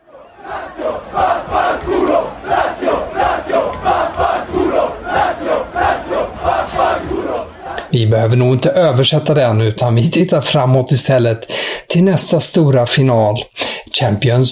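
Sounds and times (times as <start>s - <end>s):
football fans chanting against a rival club: 0.0s - 7.9s
speech: 7.9s - 14.5s.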